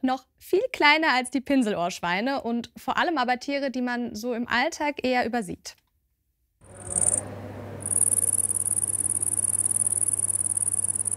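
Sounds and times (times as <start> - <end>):
speech: 0.0 - 5.8
cricket chirping: 6.7 - 7.2, 7.8 - 11.1.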